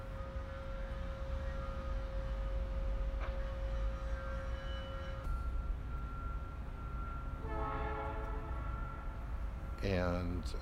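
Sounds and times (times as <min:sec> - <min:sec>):
long sustained train horn tone and wavering horn blast: 0:00.0 - 0:05.5, 0:07.4 - 0:09.4
distant train rumbling with low continuous drone: 0:00.0 - 0:10.6.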